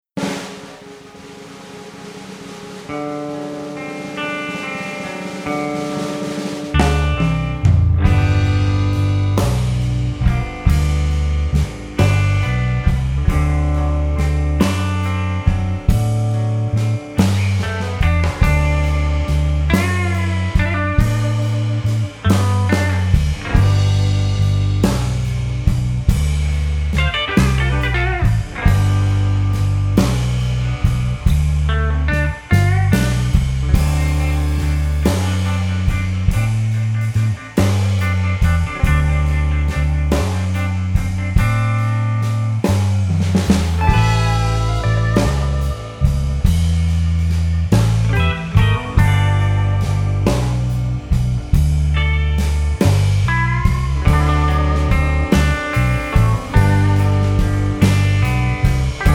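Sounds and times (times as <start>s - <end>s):
slow blues: 0.2s - 59.1s.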